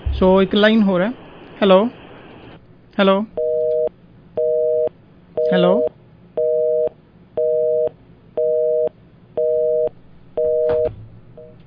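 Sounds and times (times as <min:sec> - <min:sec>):
speech: 0:00.2 - 0:02.0, 0:03.0 - 0:03.4, 0:05.5 - 0:05.9
telephone busy signal after a disconnected line: 0:03.4 - 0:10.9.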